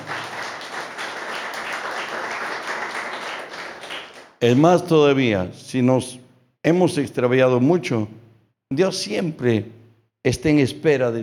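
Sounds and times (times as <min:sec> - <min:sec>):
crowd audience applauding: 0:00.0 - 0:04.4
speech: 0:04.4 - 0:11.2.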